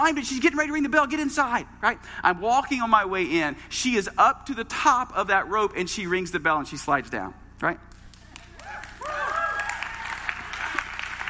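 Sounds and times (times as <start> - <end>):
speech: 0.0 - 7.9
hand clapping: 7.9 - 11.2.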